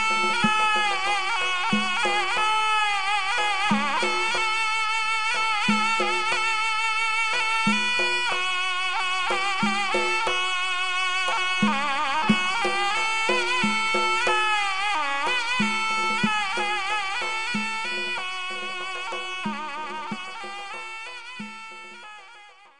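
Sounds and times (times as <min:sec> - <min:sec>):
surnay playing: 0:00.0 - 0:22.7.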